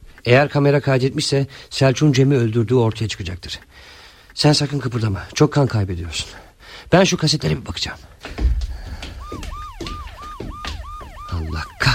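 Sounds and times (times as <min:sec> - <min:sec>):
speech: 0:00.2 - 0:08.5
police car sirens approaching: 0:08.8 - 0:11.9.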